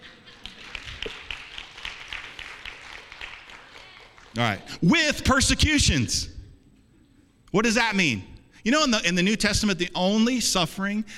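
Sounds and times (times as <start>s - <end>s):
audience clapping: 0.0s - 4.6s
speech: 4.4s - 6.3s, 7.5s - 11.1s.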